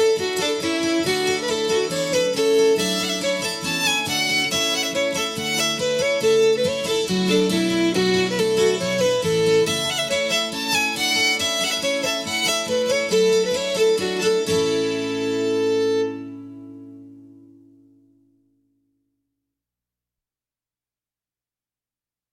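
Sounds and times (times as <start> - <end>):
Irish polka: 0.0 - 16.1.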